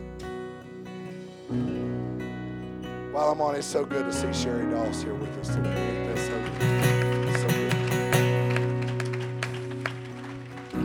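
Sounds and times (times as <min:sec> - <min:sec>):
speech: 0:01.5 - 0:01.8, 0:03.2 - 0:06.8
audience clapping: 0:05.4 - 0:10.8.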